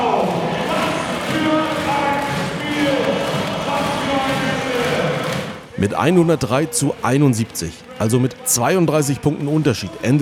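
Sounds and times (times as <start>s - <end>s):
arena crowd of about 4,500 spectators cheering after basketball win: 0.0s - 10.2s
speech: 5.8s - 10.2s.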